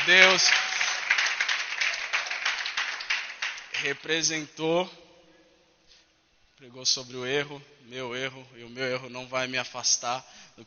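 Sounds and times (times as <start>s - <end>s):
audience applause: 0.0s - 3.9s
speech: 0.1s - 0.6s, 3.8s - 5.0s, 6.6s - 10.6s.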